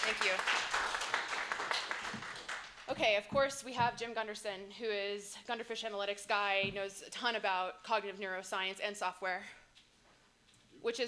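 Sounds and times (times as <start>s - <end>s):
audience applause: 0.0s - 2.9s
speech: 0.1s - 1.0s, 3.0s - 9.6s, 10.8s - 11.0s.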